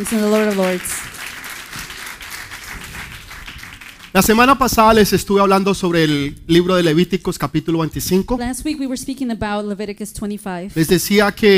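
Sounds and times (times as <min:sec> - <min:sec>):
speech: 0:00.0 - 0:01.2, 0:04.2 - 0:11.5
audience applause: 0:00.0 - 0:04.8.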